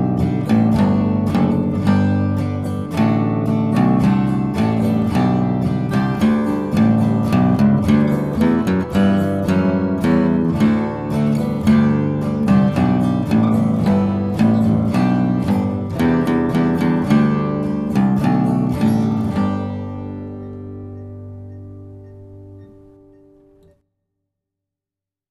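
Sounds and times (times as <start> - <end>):
Christmas bass solo: 0.0 - 23.7.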